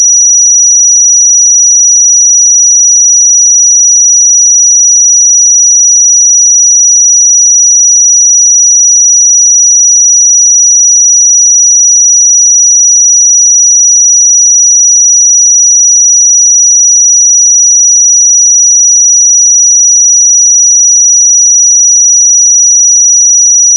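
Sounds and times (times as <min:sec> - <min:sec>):
pure sine tone at 5838 Hz: 0:00.0 - 0:23.7.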